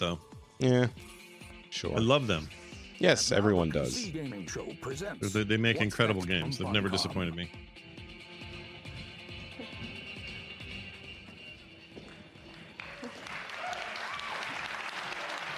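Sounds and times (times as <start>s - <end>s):
speech: 0.0s - 1.1s, 1.7s - 7.8s
laughter: 3.4s - 7.5s
audience applause: 12.7s - 15.5s.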